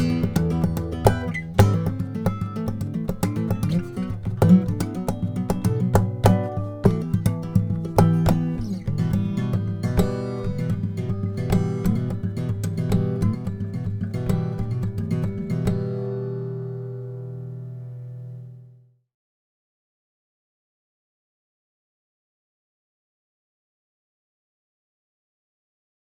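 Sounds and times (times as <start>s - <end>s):
Olson SJ acoustic guitar with spruce top and Indian rosewood: 0.0s - 18.9s.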